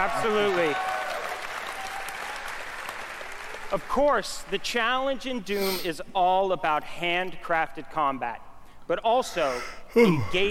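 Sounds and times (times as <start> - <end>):
speech: 0.0 - 0.9, 3.7 - 10.4
press conference audience clapping: 0.0 - 3.9.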